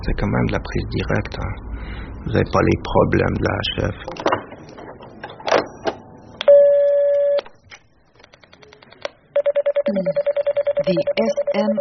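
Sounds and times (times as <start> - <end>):
speech: 0.0 - 4.3, 10.9 - 11.7
telephone beeps: 6.4 - 7.4, 9.4 - 11.7.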